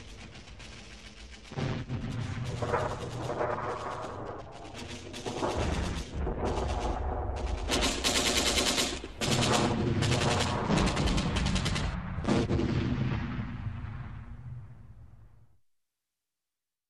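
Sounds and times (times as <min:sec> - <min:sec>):
distant gunfire: 0:00.7 - 0:13.5
explosions: 0:01.5 - 0:08.0, 0:09.0 - 0:15.3.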